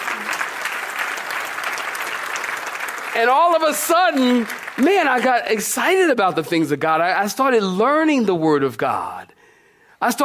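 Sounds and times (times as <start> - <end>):
audience clapping hands: 0.0 - 6.7
speech: 3.2 - 9.3, 10.0 - 10.2.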